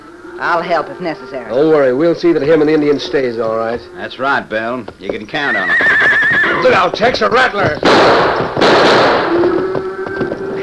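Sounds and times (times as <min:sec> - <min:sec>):
speech: 0:00.4 - 0:09.4
gunshots: 0:06.6 - 0:09.7.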